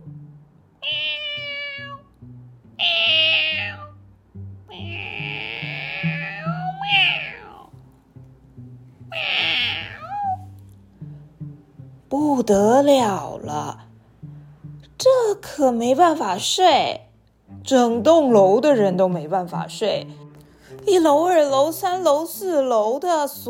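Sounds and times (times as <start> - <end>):
cat meowing on a rooftop at night: 0.8 - 2.1, 2.8 - 4.0, 4.7 - 7.7, 9.1 - 10.5
speech: 12.4 - 13.8, 15.4 - 17.0, 17.6 - 20.2, 20.8 - 23.4.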